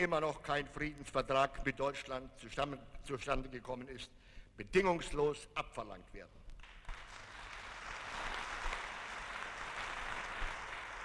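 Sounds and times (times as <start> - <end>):
speech: 0.0 - 6.4
applause: 6.6 - 11.0.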